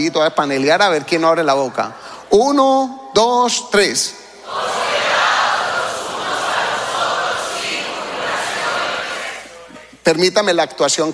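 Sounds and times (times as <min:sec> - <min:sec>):
speech: 0:00.0 - 0:04.8, 0:10.1 - 0:11.1
audience shouting together loudly: 0:04.4 - 0:09.6.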